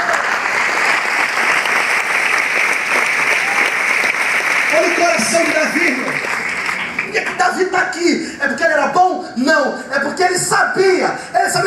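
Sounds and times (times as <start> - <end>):
audience applauding: 0.0 - 7.6
speech: 5.2 - 6.2, 7.5 - 11.6.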